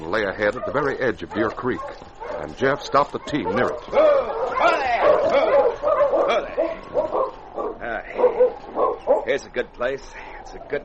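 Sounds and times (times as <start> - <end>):
pack of sled dogs barking, yipping and whimpering: 0.0 - 10.8
speech: 0.1 - 5.5, 9.3 - 10.8.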